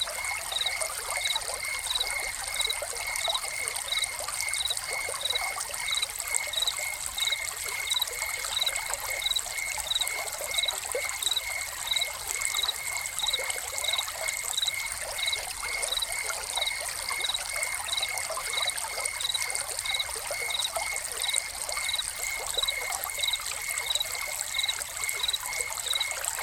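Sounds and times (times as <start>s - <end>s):
cricket chirps: 0.0s - 26.4s
fountain water pouring: 0.0s - 26.4s.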